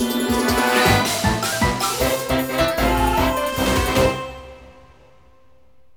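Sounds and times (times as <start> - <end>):
level clear game jingle: 0.2 - 4.6.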